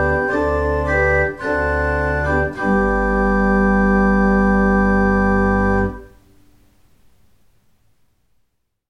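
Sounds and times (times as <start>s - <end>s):
organ playing: 0.0s - 6.2s.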